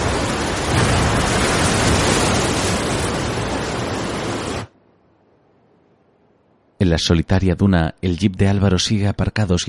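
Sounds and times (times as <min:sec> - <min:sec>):
waves breaking hard on wet sand in a cove below steep cliffs: 0:00.0 - 0:04.7
speech: 0:06.9 - 0:09.6.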